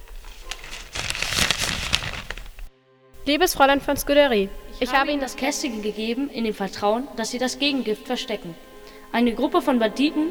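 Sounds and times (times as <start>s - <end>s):
paper note crinkling and rustling: 0.0s - 9.6s
speech: 3.2s - 10.3s.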